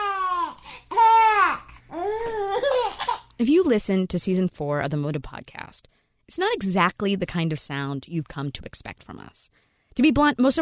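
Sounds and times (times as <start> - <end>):
baby laughing: 0.0 - 3.3
speech: 3.4 - 10.5.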